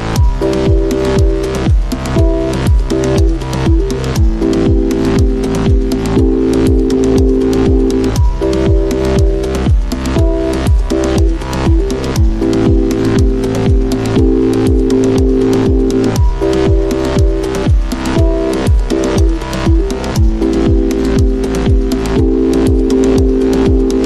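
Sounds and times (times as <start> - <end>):
phone ringtone: 0.2 - 24.0.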